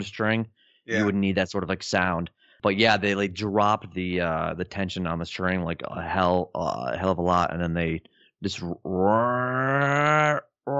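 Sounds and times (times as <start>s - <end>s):
speech: 0.0s - 10.7s
creature roar sound effect: 9.0s - 10.7s.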